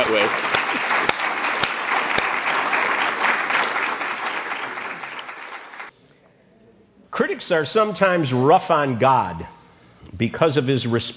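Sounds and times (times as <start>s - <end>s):
audience applause welcoming a speaker: 0.0s - 5.9s
speech: 0.1s - 1.2s, 7.5s - 9.6s, 10.2s - 11.1s.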